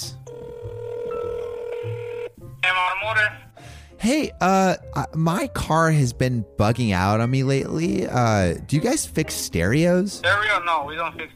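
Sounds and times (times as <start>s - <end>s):
telephone ringing as a call is placed: 0.1s - 3.4s
speech: 3.1s - 11.3s.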